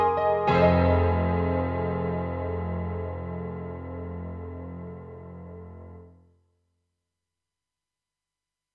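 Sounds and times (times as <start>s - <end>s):
KORG 03RW bright piano: 0.0s - 6.2s.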